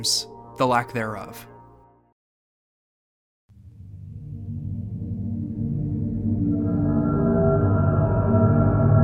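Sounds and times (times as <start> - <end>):
speech: 0.0 - 1.5
ambient video game soundtrack music: 0.0 - 2.2, 3.5 - 9.0.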